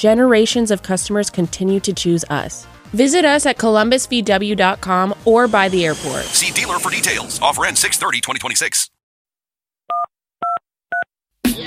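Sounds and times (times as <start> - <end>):
speech: 0.0 - 9.0
short noisy burst: 5.4 - 8.2
touch-tone telephone keypad beeps as a number is dialed: 9.9 - 11.1.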